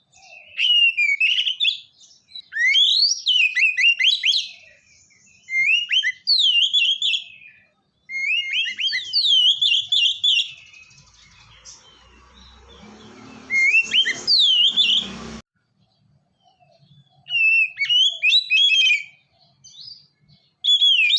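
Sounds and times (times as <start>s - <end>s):
Oriental magpie-robin giving sweet, slurred whistles: 0.1s - 15.4s, 16.5s - 20.0s, 20.6s - 21.1s.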